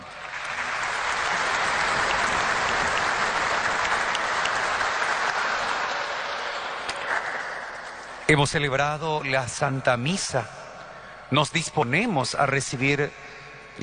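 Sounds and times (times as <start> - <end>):
audience applause: 0.0 - 8.3
speech: 8.3 - 10.6, 11.3 - 13.8.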